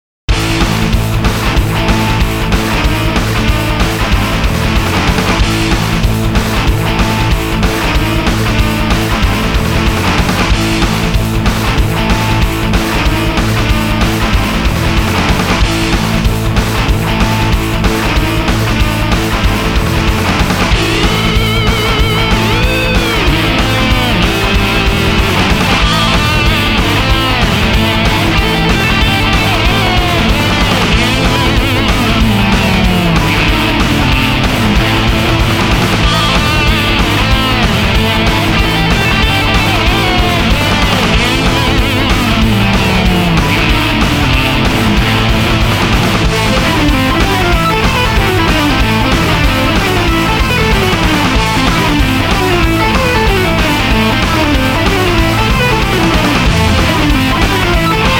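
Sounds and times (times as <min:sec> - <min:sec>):
battle music beat: 0:00.3 - 0:58.1.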